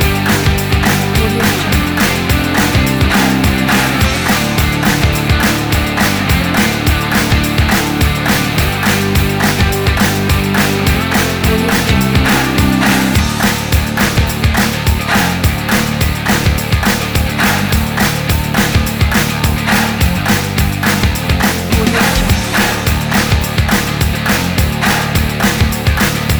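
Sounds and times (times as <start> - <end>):
upbeat energetic indie rock music: 0.0 - 26.3.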